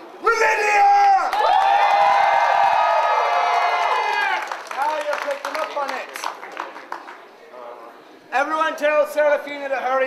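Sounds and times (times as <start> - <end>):
crowd cheering and shouting: 0.3 - 4.5
high whoops and screams: 0.5 - 4.5
scattered clapping: 3.0 - 7.3
speech: 9.0 - 10.0.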